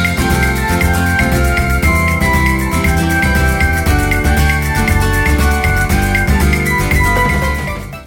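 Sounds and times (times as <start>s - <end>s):
background music: 0.0s - 8.0s.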